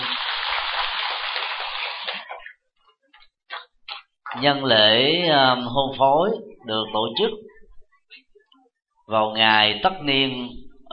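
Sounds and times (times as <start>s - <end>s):
applause: 0.0s - 2.3s
speech: 4.4s - 7.5s, 9.1s - 10.9s.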